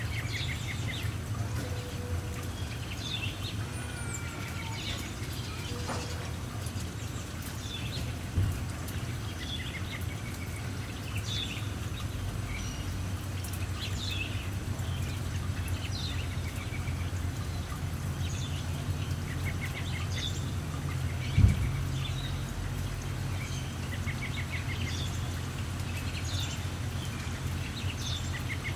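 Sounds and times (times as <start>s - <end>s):
light rain patter: 0.0s - 28.7s
low traffic rumble: 0.0s - 28.7s.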